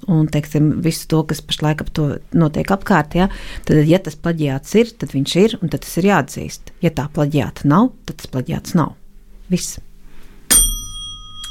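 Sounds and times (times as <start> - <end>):
speech: 0.1 - 9.9
bell struck to signal time: 10.5 - 11.4.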